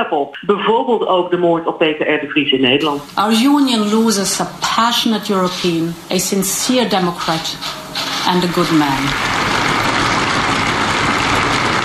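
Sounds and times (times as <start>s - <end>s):
speech: 0.0s - 9.8s
large assembly applauding in the European Parliament: 9.0s - 11.8s.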